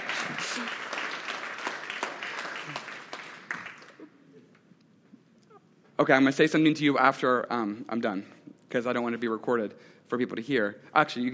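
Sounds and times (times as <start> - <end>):
audience applause: 0.0 - 4.1
speech: 0.3 - 0.8, 6.0 - 11.3.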